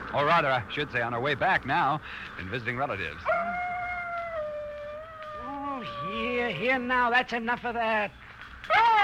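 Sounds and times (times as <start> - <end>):
speech: 0.1 - 3.7, 6.5 - 8.9
dog whining: 3.2 - 6.3.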